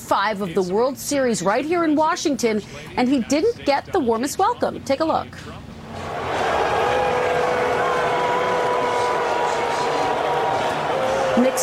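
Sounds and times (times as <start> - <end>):
speech: 0.1 - 5.7
large stadium crowd booing: 5.9 - 11.6.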